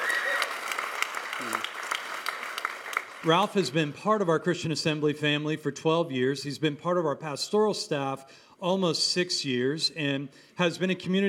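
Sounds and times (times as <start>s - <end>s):
crowd applauding: 0.0s - 3.5s
speech: 3.2s - 11.2s.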